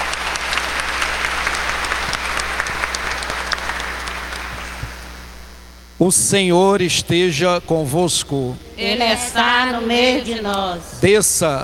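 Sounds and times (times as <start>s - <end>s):
audience applauding: 0.0s - 5.0s
speech: 6.0s - 11.6s.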